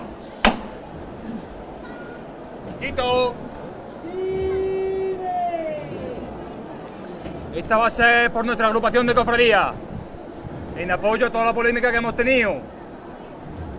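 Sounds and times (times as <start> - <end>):
crowd murmur: 0.0 - 13.7
sharp knock as Holy Week procession float is lifted: 0.4 - 0.8
speech: 2.8 - 3.5, 7.6 - 9.8, 10.8 - 12.8
raised voice: 4.0 - 6.4.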